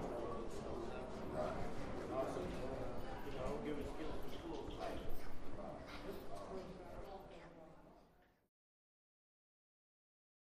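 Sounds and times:
building hallway and lobby ambience: 0:00.0 - 0:08.3.

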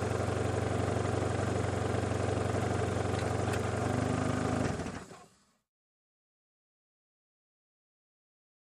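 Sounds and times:
sedan driving and stopping: 0:00.0 - 0:05.6.

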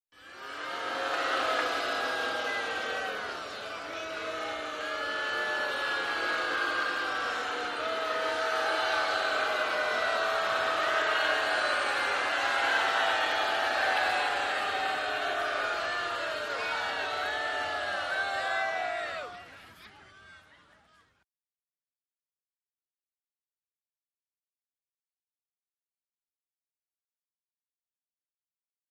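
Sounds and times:
football crowd in a sports arena: 0:00.1 - 0:21.2.

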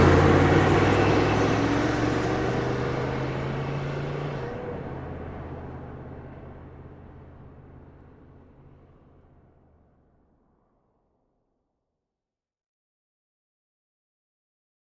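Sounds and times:
Humvee driving in fast, idling and driving away: 0:00.0 - 0:10.7.

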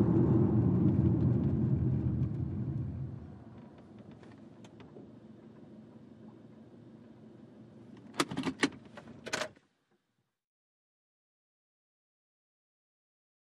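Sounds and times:
sedan accelerating slowly: 0:00.0 - 0:03.9.

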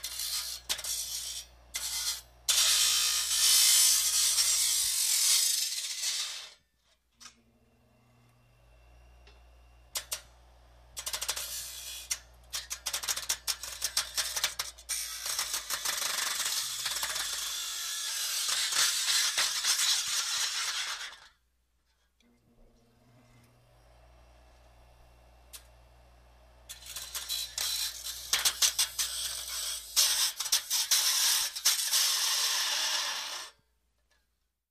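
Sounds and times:
electric grinder grinding: 0:00.0 - 0:06.6, 0:09.9 - 0:21.3, 0:25.5 - 0:33.6.

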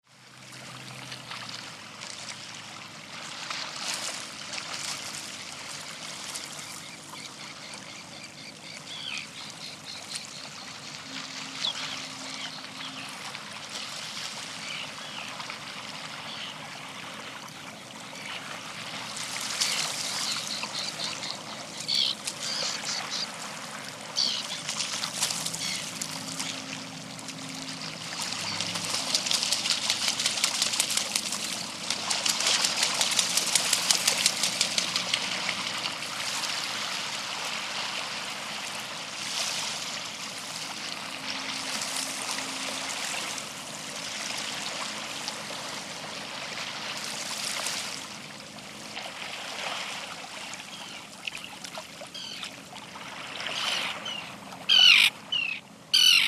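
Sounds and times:
waves on rocks: 0:00.2 - 0:56.2.

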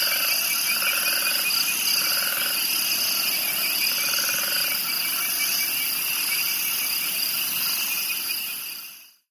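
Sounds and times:
spring peepers calling: 0:00.0 - 0:06.6
crickets chirping: 0:00.0 - 0:09.2.

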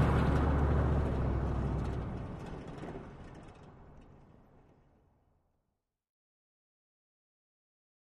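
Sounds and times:
Humvee passing very slowly: 0:00.0 - 0:03.9.

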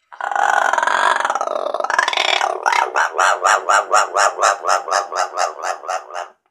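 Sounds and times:
macaws giving low-pitched caws: 0:00.2 - 0:06.3.

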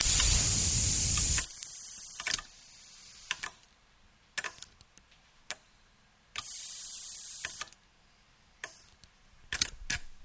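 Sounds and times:
animatronic head clicks: 0:00.0 - 0:02.5, 0:03.2 - 0:03.7, 0:04.4 - 0:05.6, 0:06.4 - 0:07.8, 0:08.6 - 0:10.1
animatronic head air hiss: 0:00.0 - 0:03.4, 0:06.4 - 0:07.7.

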